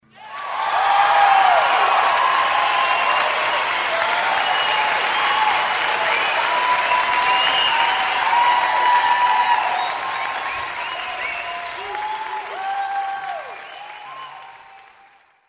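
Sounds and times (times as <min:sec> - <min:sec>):
big applause: 0:00.0 - 0:15.4.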